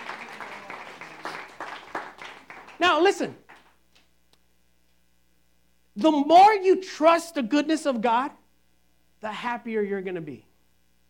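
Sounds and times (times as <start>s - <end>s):
audience applause: 0.0s - 3.8s
speech: 2.8s - 3.4s, 6.0s - 8.4s, 9.2s - 10.5s.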